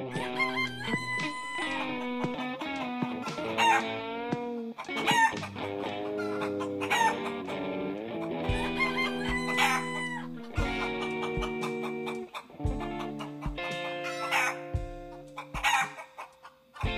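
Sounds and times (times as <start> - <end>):
rooster crowing: 0.1 - 2.3, 3.2 - 4.0, 6.1 - 7.4, 8.4 - 11.5, 14.0 - 14.6, 15.4 - 16.9
chickens clucking: 0.1 - 16.9.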